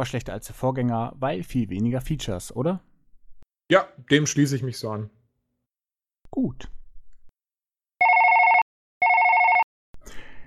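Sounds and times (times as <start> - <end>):
speech: 0.0 - 2.9, 3.7 - 5.2, 6.3 - 6.8
electronic telephone ringing: 8.0 - 9.7.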